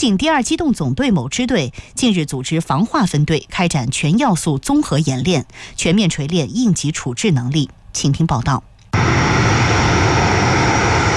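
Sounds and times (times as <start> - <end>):
speech: 0.0 - 9.3
fixed-wing anti-submarine patrol aircraft engines roaring during a naval anti-submarine training exercise: 9.0 - 11.1.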